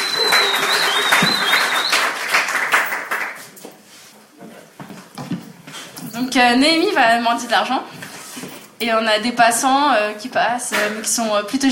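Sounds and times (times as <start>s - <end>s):
audience applause: 0.0s - 3.5s
speech: 6.3s - 8.0s, 8.8s - 11.6s.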